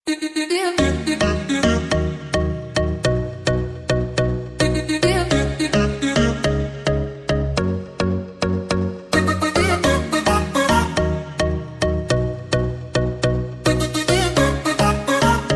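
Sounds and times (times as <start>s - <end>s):
hook up music: 0.1s - 15.5s.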